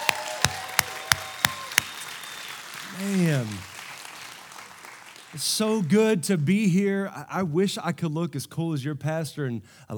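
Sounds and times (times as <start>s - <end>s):
loud round of applause: 0.0s - 5.7s
speech: 5.4s - 9.9s.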